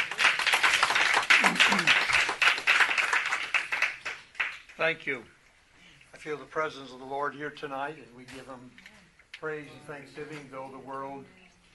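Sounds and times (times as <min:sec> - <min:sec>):
audience clapping: 0:00.0 - 0:04.9
speech: 0:04.8 - 0:05.4, 0:06.2 - 0:11.4.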